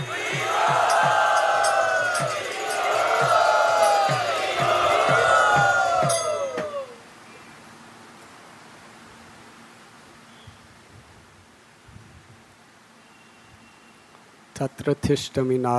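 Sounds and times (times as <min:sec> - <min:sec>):
steady regular percussive beat: 0:00.0 - 0:06.9
large crowd loudly chanting as a devotional welcome: 0:00.0 - 0:07.0
speech: 0:14.7 - 0:15.7.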